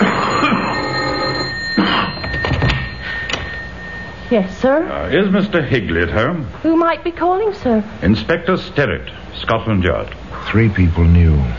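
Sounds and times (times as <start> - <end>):
doorbell ringing: 0.0 - 5.6
speech: 4.3 - 11.5.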